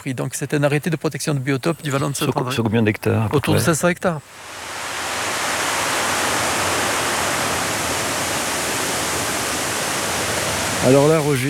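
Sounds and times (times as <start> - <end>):
speech: 0.0 - 4.8, 10.8 - 11.4
water flowing in a small protected river valley: 4.2 - 11.4.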